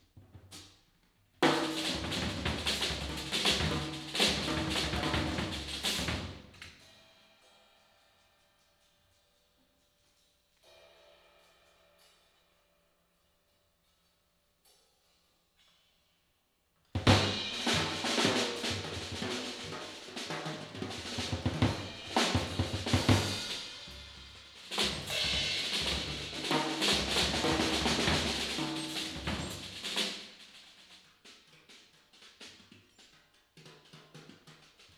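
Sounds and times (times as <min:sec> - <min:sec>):
drums: 0:00.0 - 0:07.1, 0:16.9 - 0:34.9.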